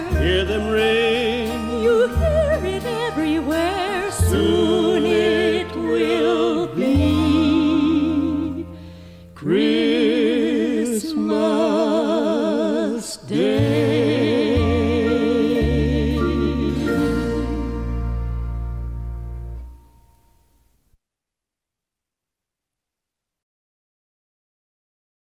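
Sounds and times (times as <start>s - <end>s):
orchestra and chorus: 0.0s - 8.8s, 9.4s - 19.7s.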